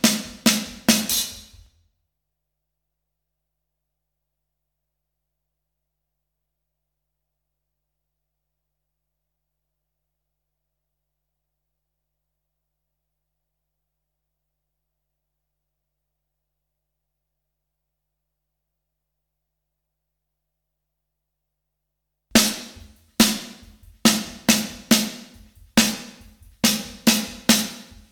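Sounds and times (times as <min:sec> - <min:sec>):
drums: 0:00.0 - 0:01.8, 0:22.3 - 0:28.1.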